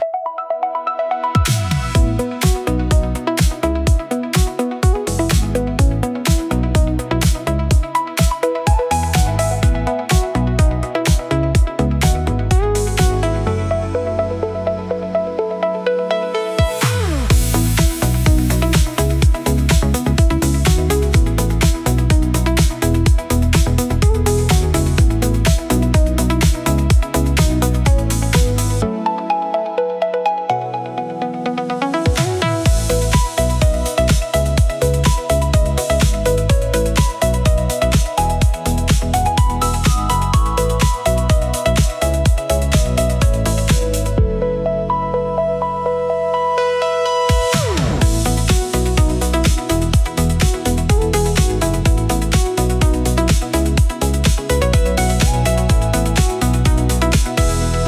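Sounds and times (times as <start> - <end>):
soft electro music: 0.0 - 57.8.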